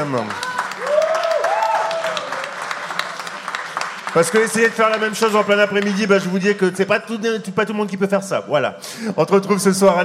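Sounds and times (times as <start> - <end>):
audience applause: 0.0 - 6.1
speech: 0.1 - 0.5, 4.1 - 10.0.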